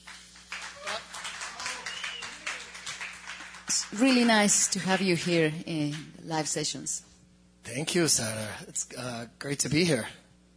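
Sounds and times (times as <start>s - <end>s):
audience applause: 0.0s - 5.6s
speech: 3.8s - 7.1s, 7.7s - 10.2s.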